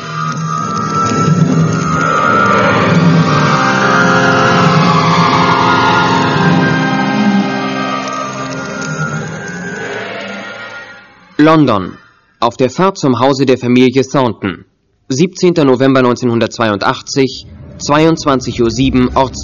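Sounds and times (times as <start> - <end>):
car engine revving and pulling away in London at about 10 pm: 0.5 - 10.3, 17.2 - 19.4
speech: 11.4 - 19.4.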